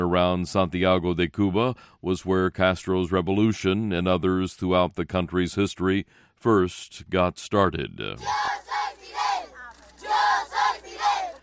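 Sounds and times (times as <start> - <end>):
speech: 0.1 - 8.9
children shouting in the streets: 8.2 - 11.4.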